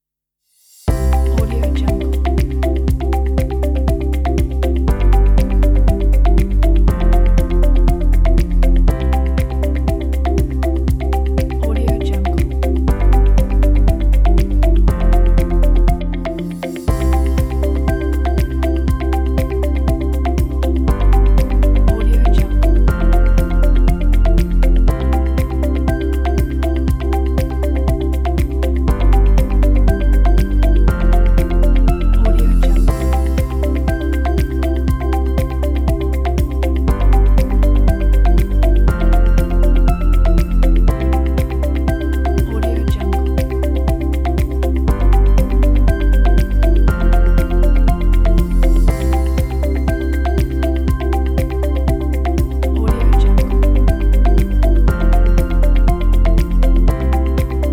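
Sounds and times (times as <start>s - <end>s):
corporate technology music: 0.9s - 57.7s.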